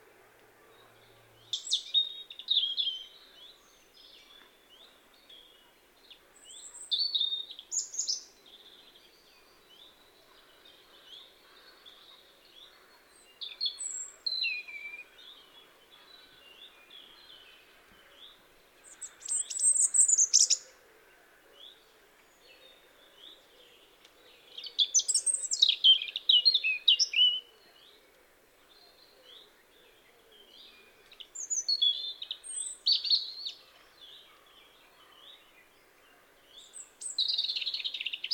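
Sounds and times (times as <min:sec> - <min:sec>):
European robin Erithacus rubecula: 0:00.0 - 0:38.3.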